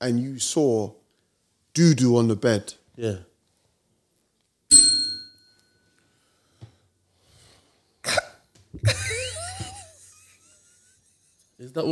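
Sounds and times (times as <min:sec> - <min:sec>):
speech: 0:00.0 - 0:01.0, 0:01.8 - 0:03.3, 0:11.6 - 0:11.9
bell being hit: 0:04.7 - 0:05.7
laughter: 0:08.8 - 0:11.4.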